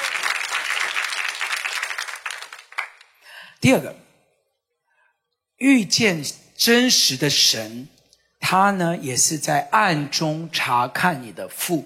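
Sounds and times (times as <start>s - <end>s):
audience clapping hands: 0.0s - 3.3s
speech: 3.6s - 4.0s, 5.6s - 11.8s.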